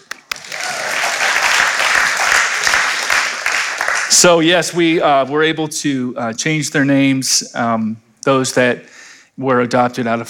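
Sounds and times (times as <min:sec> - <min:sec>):
audience applauding: 0:00.0 - 0:04.4
speech: 0:04.1 - 0:10.2.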